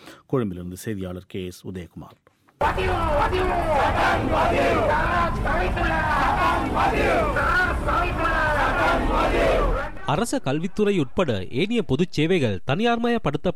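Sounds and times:
speech: 0:00.3 - 0:13.5
roar: 0:02.6 - 0:09.9
large crowd at a protest rally chanting and shouting: 0:02.6 - 0:10.2.

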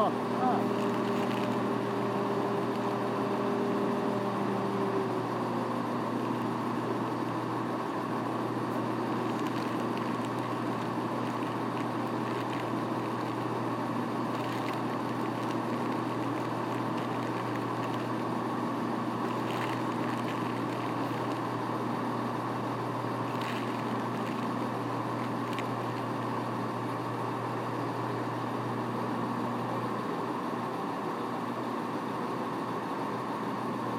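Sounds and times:
diesel passenger train engine droning: 0:00.0 - 0:33.9.

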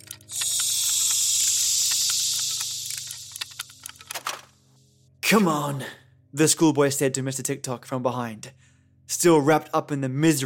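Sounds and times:
steam hissing from a leak: 0:00.2 - 0:03.9
speech: 0:05.3 - 0:08.6, 0:09.2 - 0:10.4.

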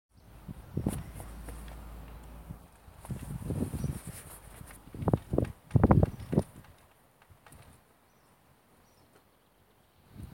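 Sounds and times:
flags flapping at St Andrews Cathedral: 0:00.8 - 0:07.9.

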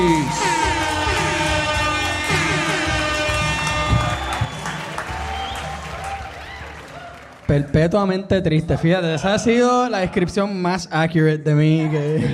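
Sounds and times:
audience applause: 0:00.0 - 0:07.7
speech: 0:00.1 - 0:00.5, 0:07.5 - 0:12.3.

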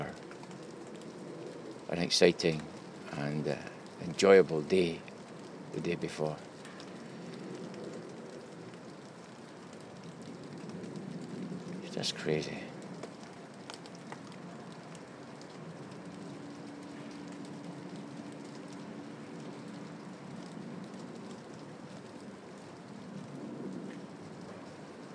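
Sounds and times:
heavy rain: 0:00.0 - 0:25.1
wind: 0:00.0 - 0:25.1
speech: 0:01.9 - 0:05.1, 0:05.8 - 0:06.5, 0:12.0 - 0:12.6.

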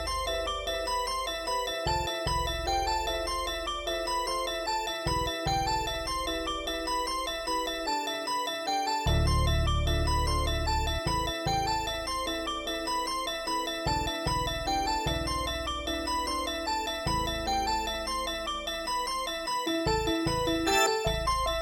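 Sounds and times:
bell: 0:00.0 - 0:21.6
virtual piano: 0:00.0 - 0:21.6
flute: 0:20.6 - 0:21.6.

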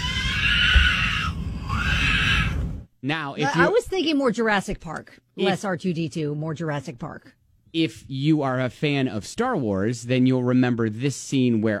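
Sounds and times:
child's high-pitched scream: 0:00.0 - 0:02.7
speech: 0:03.0 - 0:11.7.

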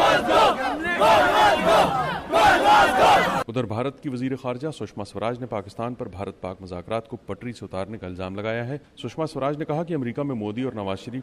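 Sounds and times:
crowd of Pakistani-origin protesters chanting slogans against Nawaz Sharif outside the UN building: 0:00.0 - 0:03.4
speech: 0:02.9 - 0:11.2.

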